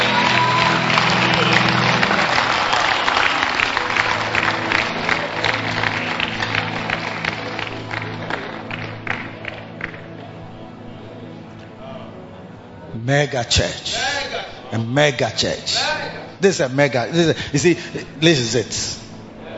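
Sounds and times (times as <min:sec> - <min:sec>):
scattered whoops: 0:00.0 - 0:03.6
audience clapping and cheering: 0:00.0 - 0:10.5
speech: 0:13.2 - 0:19.0.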